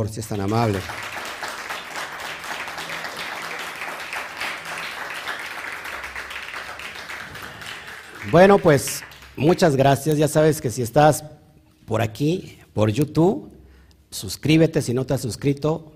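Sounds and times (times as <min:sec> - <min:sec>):
speech: 0:00.0 - 0:01.2, 0:08.2 - 0:15.9
audience applause: 0:00.4 - 0:09.7.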